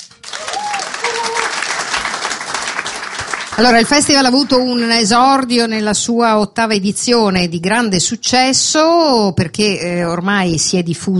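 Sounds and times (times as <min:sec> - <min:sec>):
audience applause: 0:00.0 - 0:04.8
speech: 0:03.6 - 0:11.1.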